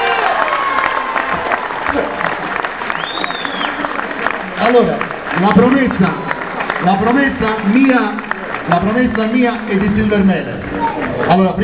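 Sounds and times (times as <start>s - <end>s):
shouts: 0.0s - 1.6s
crowd applause: 0.0s - 11.6s
brief high whistle: 2.9s - 3.8s
speech: 4.7s - 11.6s.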